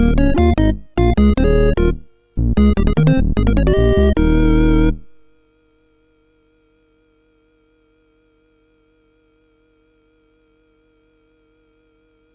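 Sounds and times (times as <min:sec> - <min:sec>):
game music on MOS6581R4 chip: 0:00.0 - 0:05.2.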